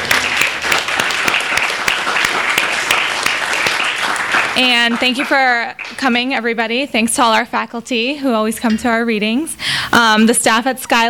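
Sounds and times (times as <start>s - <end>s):
audience applause: 0.0s - 6.0s
speech: 4.6s - 11.0s.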